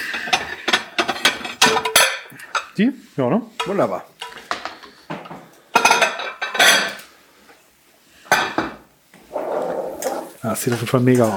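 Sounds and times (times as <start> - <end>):
large plates clattering and clinking as they are handled: 0.0 - 2.8, 3.6 - 7.1, 8.3 - 10.4
speech: 2.8 - 4.1, 10.4 - 11.3.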